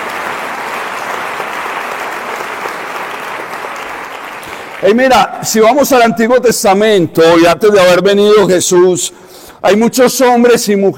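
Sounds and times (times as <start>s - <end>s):
audience applause: 0.0s - 5.0s
speech: 4.8s - 10.9s.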